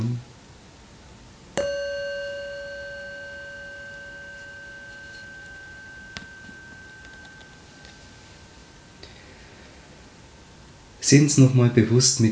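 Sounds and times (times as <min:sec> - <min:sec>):
meditation bell ringing: 0:01.6 - 0:08.6
speech: 0:11.0 - 0:12.2.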